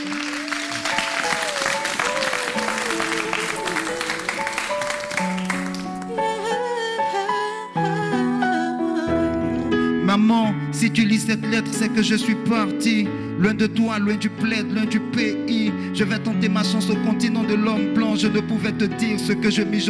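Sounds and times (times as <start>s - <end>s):
audience applause: 0.0s - 6.2s
sustained musical backing: 0.0s - 19.8s
speech: 10.2s - 19.8s.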